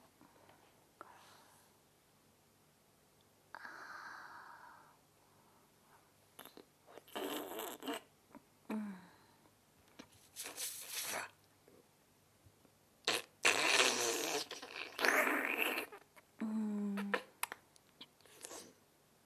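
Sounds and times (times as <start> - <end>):
married woman making oral sex sucking sounds: 6.4 - 8.1, 10.4 - 11.4, 13.1 - 16.2, 16.9 - 18.8.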